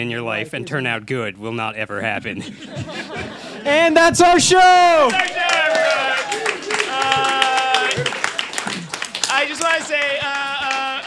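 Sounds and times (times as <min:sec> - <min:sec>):
laughter: 0:00.0 - 0:01.1, 0:02.0 - 0:11.0
speech: 0:00.0 - 0:05.9
audience applause: 0:04.8 - 0:11.0.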